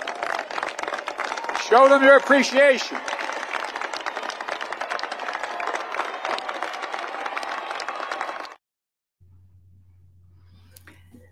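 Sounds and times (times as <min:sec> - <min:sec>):
graduation audience applauding: 0:00.0 - 0:08.6
speech: 0:01.7 - 0:03.1.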